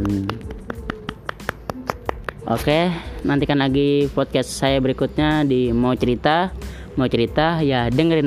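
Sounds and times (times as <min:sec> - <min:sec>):
hand clapping: 0:00.0 - 0:02.7
speech: 0:02.5 - 0:08.2.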